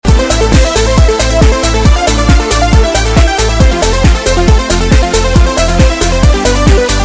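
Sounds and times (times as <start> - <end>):
music loop: 0.0 - 7.0.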